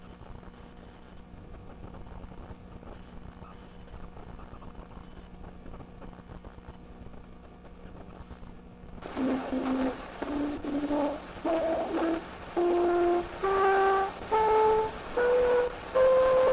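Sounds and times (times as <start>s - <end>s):
cornet playing a simple scale in 1857: 9.0s - 16.5s.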